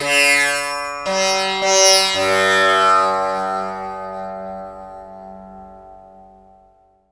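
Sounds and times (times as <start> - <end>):
tampura: 0.0 - 7.0.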